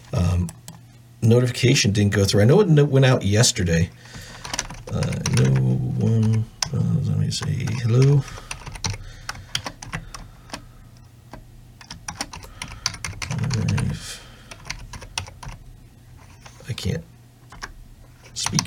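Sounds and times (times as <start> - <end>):
speech: 1.2 - 4.2, 6.7 - 8.4
typing on a computer keyboard: 4.3 - 6.8, 7.4 - 10.6, 11.3 - 15.6, 17.5 - 18.6.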